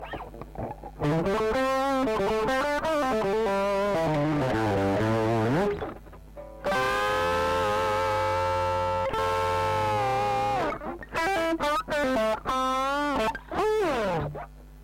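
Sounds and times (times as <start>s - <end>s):
guitar: 0.0s - 14.8s.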